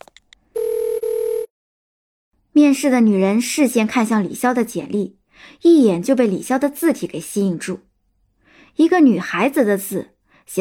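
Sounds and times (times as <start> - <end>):
telephone ringing tone: 0.6 - 1.5
speech: 2.6 - 7.9, 8.8 - 10.5.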